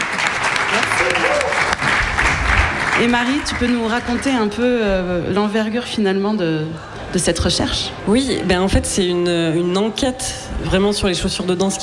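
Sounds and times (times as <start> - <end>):
studio audience applauding a guest on the set: 0.0 - 4.7
speech: 3.0 - 11.8.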